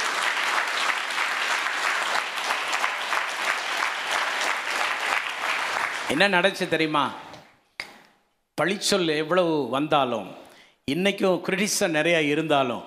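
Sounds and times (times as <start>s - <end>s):
audience applause: 0.0s - 6.1s
speech: 6.1s - 7.2s, 8.6s - 12.8s.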